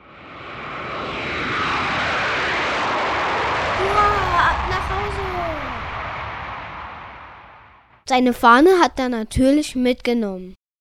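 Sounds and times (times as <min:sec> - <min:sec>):
airplane flying: 0:00.0 - 0:08.0
speech: 0:08.1 - 0:10.6.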